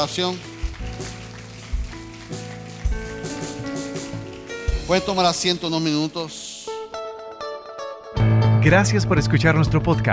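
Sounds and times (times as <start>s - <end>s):
speech: 0.0s - 1.1s, 4.9s - 6.5s, 8.6s - 10.1s
audience applause: 0.0s - 5.6s
sustained keyboard chords: 0.0s - 10.1s
low music thumps: 0.5s - 5.5s.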